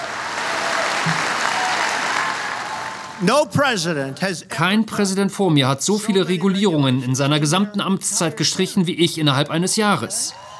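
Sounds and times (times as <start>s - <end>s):
long sustained applause: 0.0s - 3.2s, 10.1s - 10.5s
speech: 3.2s - 10.5s.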